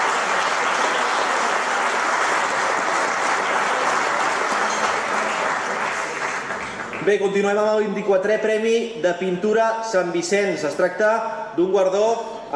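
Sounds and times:
audience applause: 0.0 - 7.1
speech: 7.1 - 12.5.

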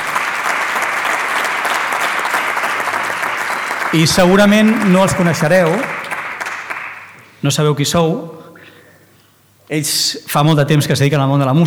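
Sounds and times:
audience applause: 0.0 - 7.2
speech: 3.9 - 6.0, 7.4 - 8.4, 9.7 - 11.6.

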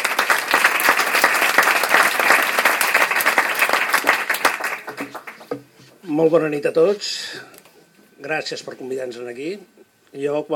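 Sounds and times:
room full of people applauding: 0.0 - 5.6
speech: 6.1 - 7.5, 8.2 - 10.5.

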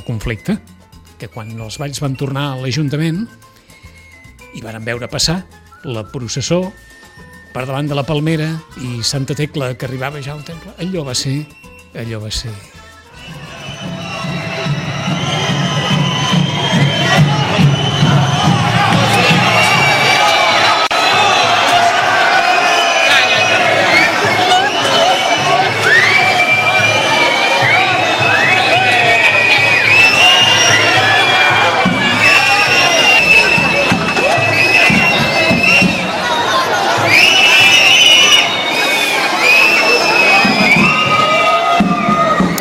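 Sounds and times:
speech: 0.0 - 3.5, 4.6 - 13.3
crowd whistling at procession: 0.0 - 8.6, 9.6 - 42.5
crowd cheering at procession: 13.1 - 42.5.

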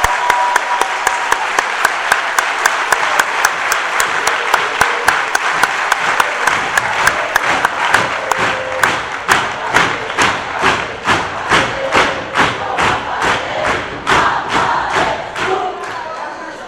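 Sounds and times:
audience applause: 0.0 - 16.5.

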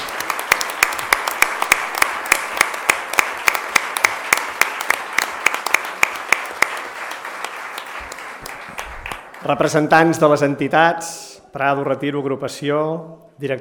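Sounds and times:
audience applause: 0.0 - 10.1
speech: 9.5 - 13.5.

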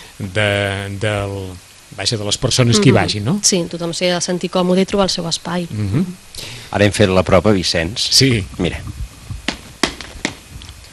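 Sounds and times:
speech: 0.2 - 9.0
foot thumping against the floor: 9.3 - 10.4.

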